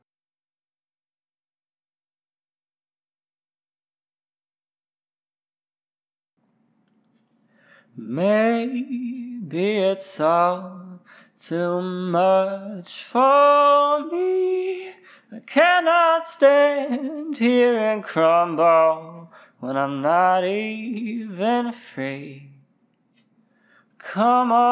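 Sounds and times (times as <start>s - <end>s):
a cappella singing at 90 BPM: 7.9s - 22.7s, 24.0s - 24.7s.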